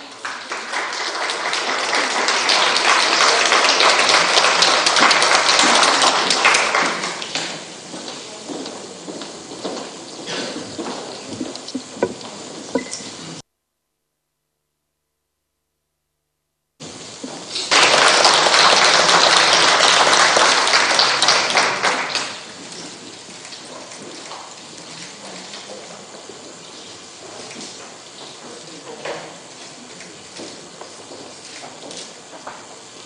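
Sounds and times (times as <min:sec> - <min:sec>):
audience applause: 0:00.0 - 0:08.3, 0:17.4 - 0:23.0.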